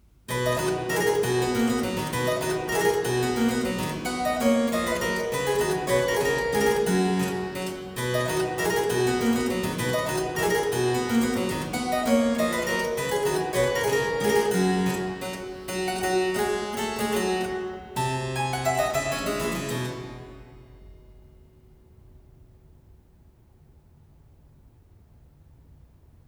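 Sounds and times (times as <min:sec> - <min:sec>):
minuet in C major: 0:00.3 - 0:20.9.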